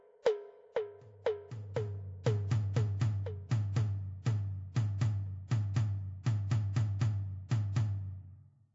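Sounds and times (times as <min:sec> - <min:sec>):
rhythm: 0:00.3 - 0:08.2.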